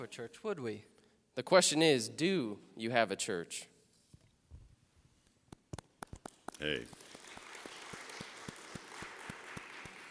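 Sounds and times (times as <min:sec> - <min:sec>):
speech: 0:00.0 - 0:03.7, 0:06.6 - 0:07.0
audience applause: 0:06.0 - 0:10.0.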